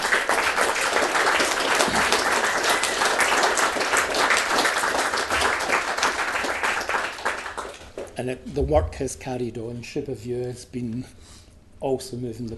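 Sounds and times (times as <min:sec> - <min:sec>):
audience applause at a meeting thanking a council staff member: 0:00.0 - 0:08.1
speech: 0:08.2 - 0:12.5.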